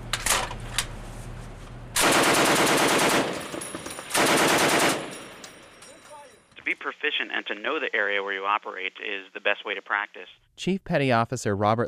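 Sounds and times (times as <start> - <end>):
heavy machine gun bursts fired over water: 2.0 - 5.5
speech: 7.1 - 11.8.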